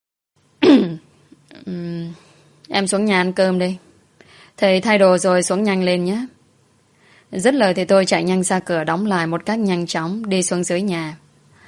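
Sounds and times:
person clearing throat: 0.6s - 1.1s
speech: 1.6s - 3.9s, 4.6s - 6.4s, 7.3s - 11.2s.

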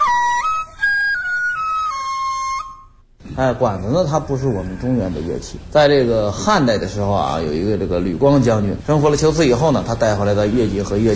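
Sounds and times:
Chinese bamboo flute dizi playing a melody: 0.0s - 3.1s
speech: 3.4s - 11.1s.

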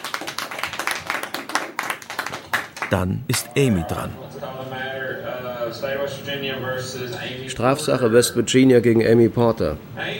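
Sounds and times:
crowd applauding in a courtroom: 0.0s - 3.9s
speech: 2.9s - 10.1s.

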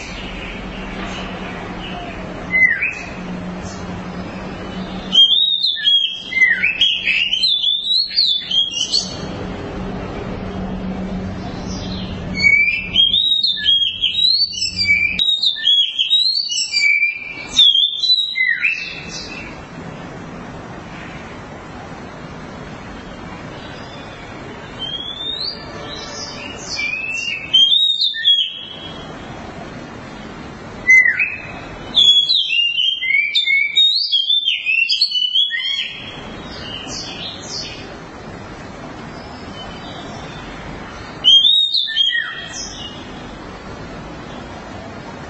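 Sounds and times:
Oriental magpie-robin singing: 0.0s - 9.4s, 11.4s - 19.6s, 23.5s - 29.2s, 30.8s - 37.9s, 39.0s - 43.3s
low noise: 0.0s - 45.2s.

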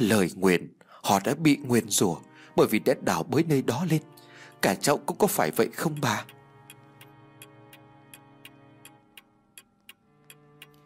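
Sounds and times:
speech: 0.0s - 6.4s
clock ticking in a room: 3.8s - 10.8s.

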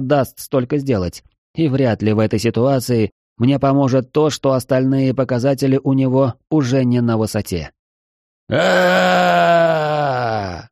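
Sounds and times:
speech: 0.0s - 7.8s, 8.5s - 9.7s
shadow creature screaming: 8.5s - 10.7s.

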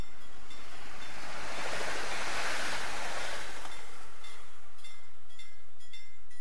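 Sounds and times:
train passing through Torsåker station at full speed: 0.0s - 6.0s.

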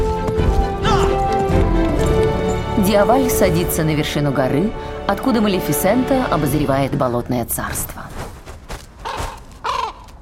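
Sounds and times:
horse galloping through a forest: 0.0s - 2.9s, 7.7s - 10.2s
speech: 2.9s - 8.1s.

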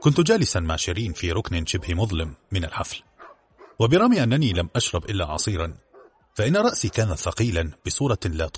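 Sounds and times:
speech: 0.0s - 3.1s, 3.8s - 5.8s, 6.4s - 8.5s
man narrating: 0.0s - 3.2s, 3.8s - 5.8s, 6.4s - 8.5s
dog barking in the distance: 0.9s - 2.1s, 3.2s - 3.8s, 4.4s - 4.8s, 5.8s - 6.4s.

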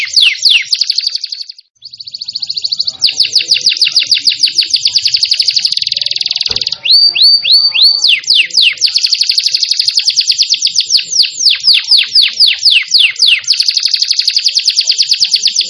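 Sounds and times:
canary trilling: 0.0s - 15.6s.

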